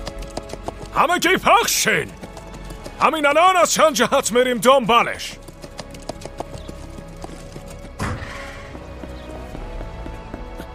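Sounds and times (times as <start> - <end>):
horse pulling a cart, hooves clip-clopping: 0.0 - 10.7
speech: 1.0 - 2.2, 3.0 - 5.4.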